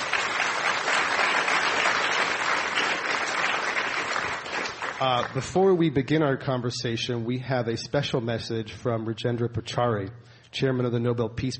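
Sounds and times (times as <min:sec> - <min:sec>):
audience applause at the Commonwealth Club welcoming the speakers: 0:00.0 - 0:05.5
speech: 0:05.0 - 0:11.5.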